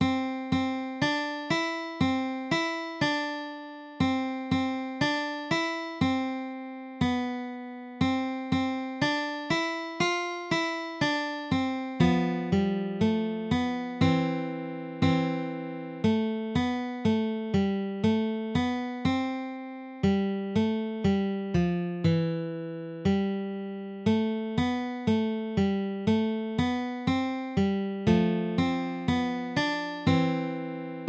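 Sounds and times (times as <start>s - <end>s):
guitar: 0.0s - 31.0s.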